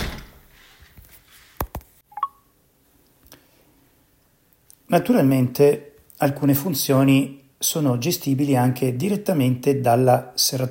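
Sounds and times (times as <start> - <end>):
smart lock door clicks on being pulled shut: 0.0 - 0.5
smart lock short electronic beeps: 2.1 - 2.5
speech: 4.9 - 10.6.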